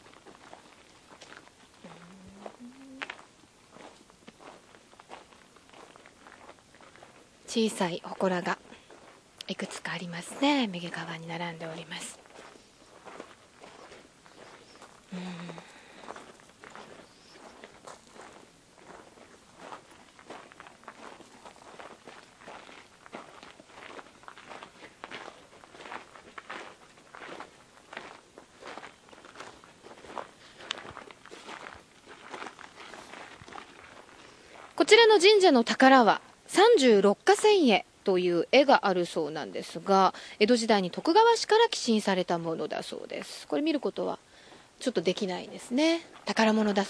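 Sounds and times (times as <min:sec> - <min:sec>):
footsteps walking around a shrine: 0:00.0 - 0:07.4, 0:08.3 - 0:34.8
speech: 0:07.5 - 0:08.6, 0:09.5 - 0:12.2, 0:35.2 - 0:46.8.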